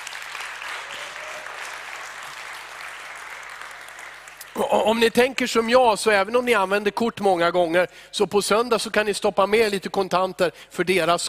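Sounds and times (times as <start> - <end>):
audience applause: 0.0 - 5.1
speech: 4.6 - 11.2.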